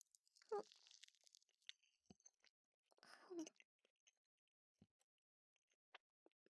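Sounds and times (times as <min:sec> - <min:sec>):
biting into a soft choux cream puff: 0:00.5 - 0:01.8.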